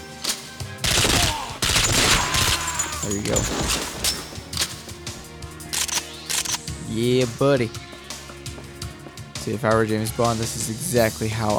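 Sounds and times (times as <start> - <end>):
video game gunfire during a castle infiltration: 0.8 - 4.8
speech: 3.1 - 4.1, 6.9 - 7.9, 9.5 - 11.5.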